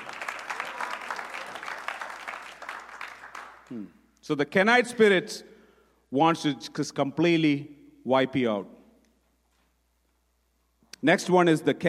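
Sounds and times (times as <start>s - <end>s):
audience clapping: 0.0s - 3.8s
speech: 3.7s - 5.5s, 6.1s - 8.8s, 11.0s - 11.8s.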